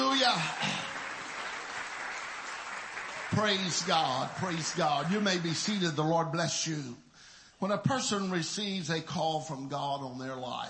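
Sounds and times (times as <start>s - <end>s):
audience clapping hands: 0.0s - 6.4s
speech: 3.3s - 7.0s, 7.6s - 10.6s.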